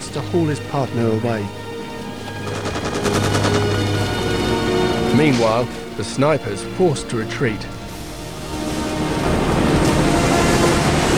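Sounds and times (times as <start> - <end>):
steady low drone: 0.0 - 11.1
speech: 0.1 - 1.6, 5.2 - 7.8
machine-gun fire from a helicopter over a jungle: 2.4 - 4.3.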